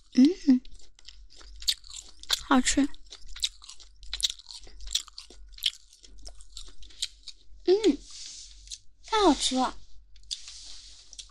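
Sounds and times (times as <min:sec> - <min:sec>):
crunchy chewing of crisp, chewy skin: 0:00.0 - 0:07.6, 0:10.2 - 0:11.2
speech: 0:02.5 - 0:03.0, 0:09.4 - 0:09.8.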